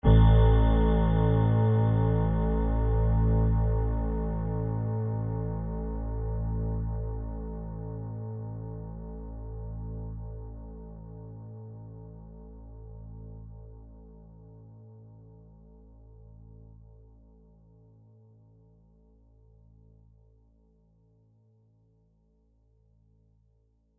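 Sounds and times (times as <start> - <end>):
sustained tone: 0.0 - 6.5.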